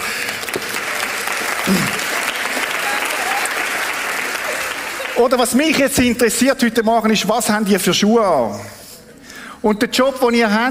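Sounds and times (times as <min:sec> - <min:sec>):
audience applause: 0:00.0 - 0:05.7
speech: 0:01.7 - 0:02.0, 0:05.2 - 0:08.8, 0:09.6 - 0:10.6.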